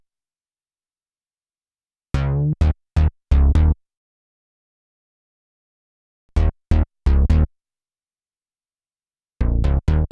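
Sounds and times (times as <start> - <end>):
blower bass: 2.2 - 3.7, 6.4 - 7.5, 9.4 - 10.0.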